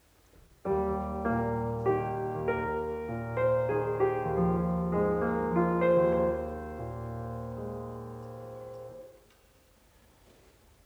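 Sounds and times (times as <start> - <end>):
piano music: 0.6 - 9.3.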